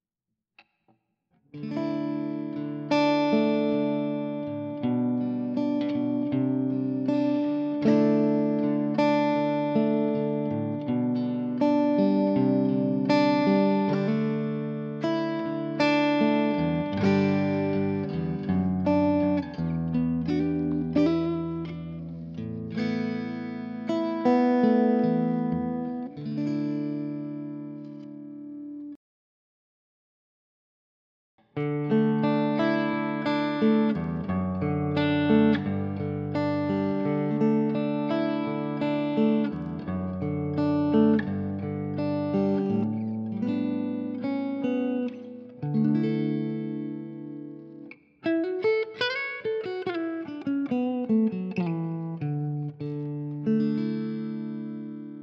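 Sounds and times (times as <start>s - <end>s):
electro-acoustic Telecaster with neck, bridge and acoustic pickups: 1.6s - 28.6s, 31.6s - 55.2s.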